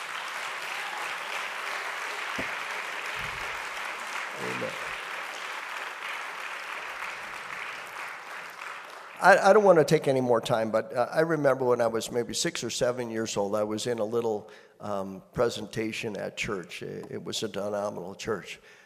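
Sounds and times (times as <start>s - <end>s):
audience applause: 0.0s - 9.3s
speech: 9.2s - 18.8s.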